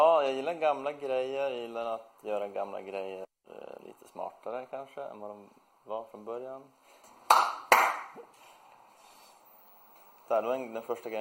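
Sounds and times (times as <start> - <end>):
speech: 0.0 - 6.8, 10.3 - 11.1
hand claps triggering a clap-sensor lamp: 7.3 - 8.3.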